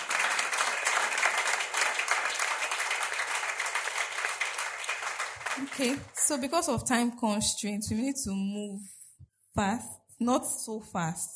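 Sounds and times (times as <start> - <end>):
audience applauding: 0.0 - 6.3
speech: 5.6 - 9.0, 9.6 - 11.3.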